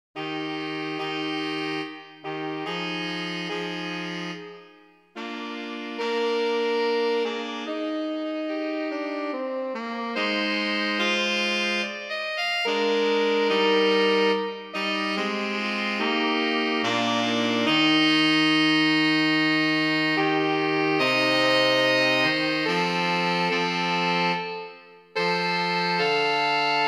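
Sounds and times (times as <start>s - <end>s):
saxophone playing a baroque aria: 0.2s - 26.8s.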